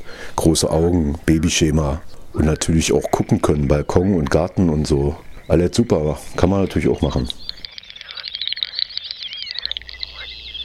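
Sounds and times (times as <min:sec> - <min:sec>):
Great snipe calling: 0:00.1 - 0:10.6
speech: 0:00.4 - 0:07.4.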